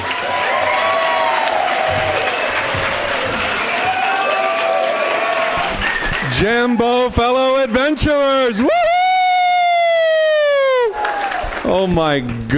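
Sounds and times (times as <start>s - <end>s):
audience cheers and whoops at a talk: 0.0s - 6.2s, 8.6s - 11.5s
audience applause welcoming speaker Mike Dooley at a talk: 0.0s - 7.1s, 9.5s - 12.5s
speech: 6.4s - 8.8s, 11.7s - 12.5s.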